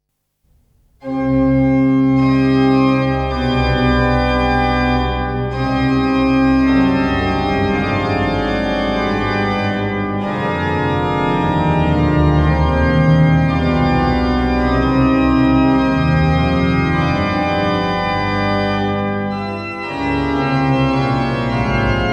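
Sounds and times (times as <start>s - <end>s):
organ fantasia in C minor: 1.0s - 22.1s.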